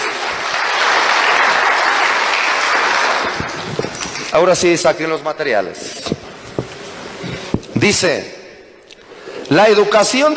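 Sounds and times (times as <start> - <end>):
audience applause: 0.0 - 4.8
speech: 4.4 - 6.2, 7.8 - 8.4, 9.5 - 10.3.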